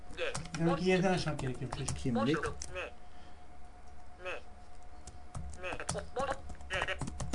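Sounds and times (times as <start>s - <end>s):
speech: 0.2s - 3.0s
typing on a computer keyboard: 0.3s - 0.7s, 1.3s - 2.7s, 5.0s - 7.3s.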